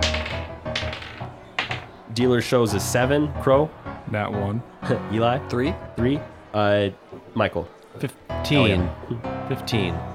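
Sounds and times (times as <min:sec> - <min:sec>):
twenty-sided dice clattering across a table: 0:00.0 - 0:02.0
speech: 0:02.2 - 0:10.1.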